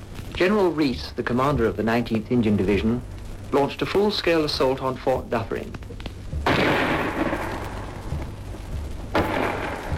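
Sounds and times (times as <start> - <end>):
speech: 0.4 - 6.0
5.5-inch gun firing at point-blank range at a fort wall: 6.4 - 7.6, 9.1 - 9.9
shell bursting on a fort wall: 6.4 - 8.3, 9.1 - 9.9.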